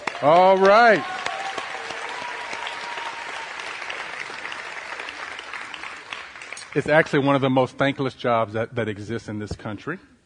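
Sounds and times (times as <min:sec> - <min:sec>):
audience applause for the fathers: 0:00.0 - 0:07.0
speech: 0:00.2 - 0:01.2, 0:06.8 - 0:10.1.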